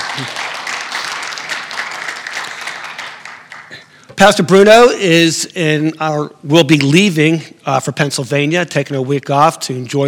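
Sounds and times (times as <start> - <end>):
audience applauding: 0.0 - 3.9
speech: 4.2 - 10.0.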